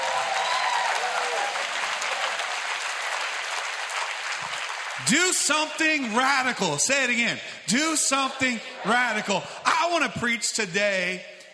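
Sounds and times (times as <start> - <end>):
faint whoops and cheers: 0.0 - 2.5
audience applause: 0.0 - 5.8
speech: 5.0 - 11.3.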